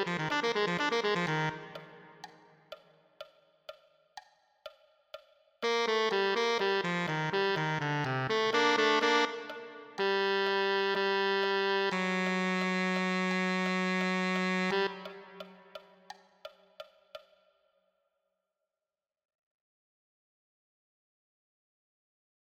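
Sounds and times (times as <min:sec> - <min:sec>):
tenor saxophone: 0:00.0 - 0:02.3, 0:05.6 - 0:15.8.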